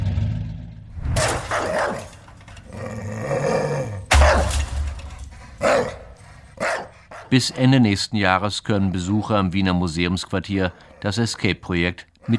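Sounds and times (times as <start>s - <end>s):
guard dogs barking aggressively: 1.2s - 7.7s
dogs growling: 1.4s - 7.8s, 10.5s - 11.2s, 12.2s - 12.3s
speech: 7.3s - 12.3s.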